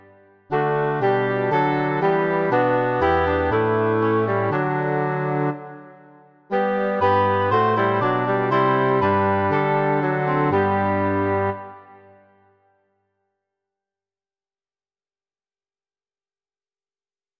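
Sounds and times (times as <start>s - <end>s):
bassoon: 0.0s - 12.4s
tuba: 0.5s - 12.3s
two English horns: 0.5s - 12.4s.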